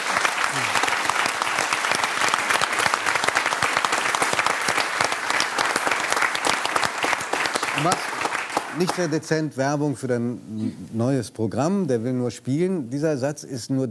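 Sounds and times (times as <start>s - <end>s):
audience applause: 0.0s - 9.4s
speech: 7.8s - 8.1s, 8.8s - 13.8s.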